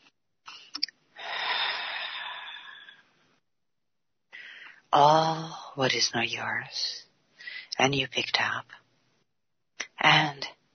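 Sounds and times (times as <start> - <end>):
short breathy sounds: 0.5 - 3.2
person exhaling during a guided breathing exercise: 1.2 - 3.1
speech: 5.0 - 7.0, 7.8 - 8.8.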